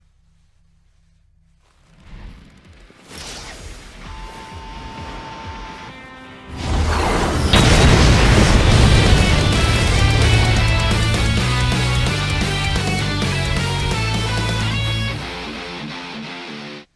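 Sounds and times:
serious punch impact: 6.7s - 14.0s.

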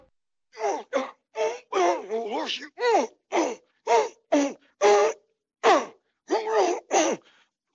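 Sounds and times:
bearded men grunting: 0.6s - 5.1s, 5.7s - 7.1s.

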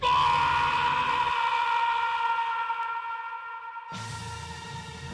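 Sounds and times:
death scream: 0.0s - 4.0s.

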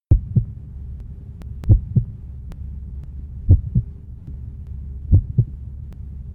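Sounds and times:
heart beating: 0.1s - 0.6s, 1.6s - 2.2s, 3.5s - 4.0s, 5.1s - 5.6s.

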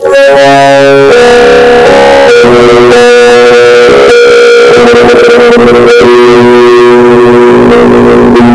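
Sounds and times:
bass-boosted horror bass: 0.0s - 8.5s.

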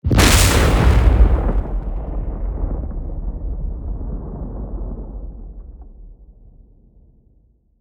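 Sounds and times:
thunder: 0.0s - 7.4s.

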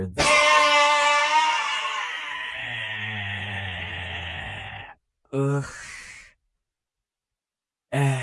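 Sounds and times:
person groaning: 0.2s - 6.2s, 7.9s - 8.2s.

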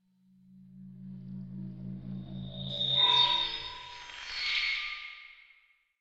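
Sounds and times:
computer feedback: 2.1s - 5.2s.

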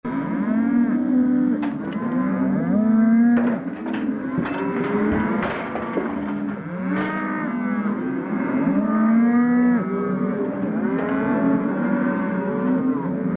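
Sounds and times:
herd of cows mooing: 0.1s - 13.3s.

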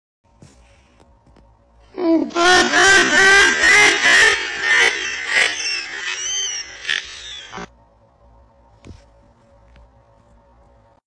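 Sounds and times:
long laugh: 2.0s - 7.7s.

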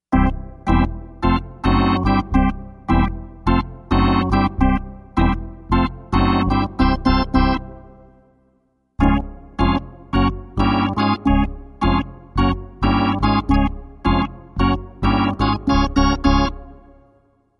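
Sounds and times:
organ: 0.1s - 8.2s, 9.0s - 17.1s.

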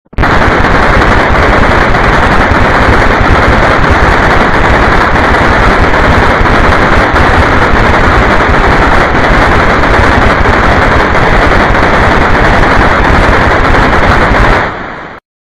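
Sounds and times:
minigun firing: 0.2s - 14.8s.

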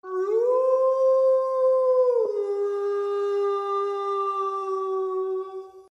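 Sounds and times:
distant wolf howling: 0.0s - 5.8s.

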